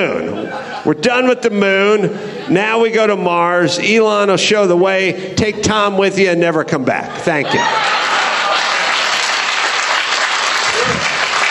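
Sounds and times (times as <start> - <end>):
laughter: 0.0 - 1.0, 7.0 - 11.4
speech: 0.0 - 8.0
audience applause: 7.7 - 11.4.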